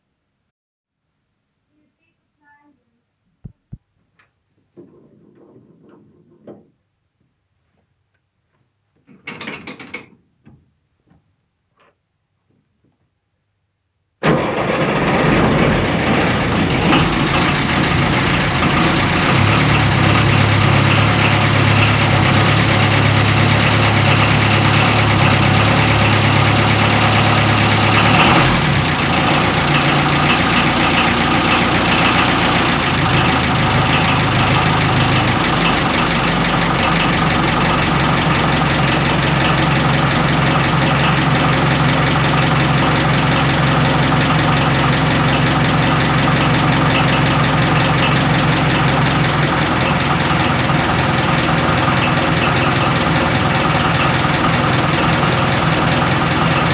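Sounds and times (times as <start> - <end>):
Unimog engine starting: 14.2 - 56.7.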